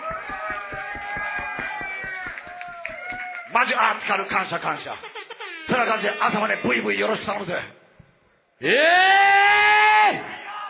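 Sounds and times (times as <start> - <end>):
steady fast rhythmic thumping: 0.0 - 3.5
crowd applauding and cheering: 0.0 - 3.8
speech: 3.6 - 5.1, 5.7 - 7.8, 8.6 - 9.3.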